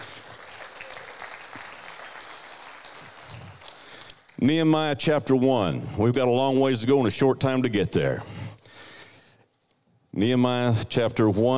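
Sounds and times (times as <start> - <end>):
crowd clapping: 0.0 - 4.5
speech: 4.4 - 8.3, 10.2 - 11.5.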